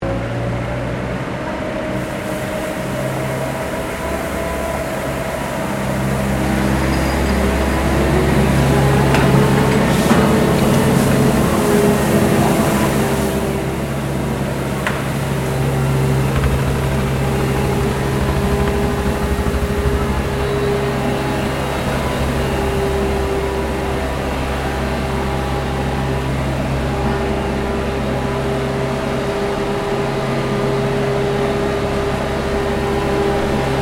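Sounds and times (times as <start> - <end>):
small street sweeper operating: 0.0 - 33.8.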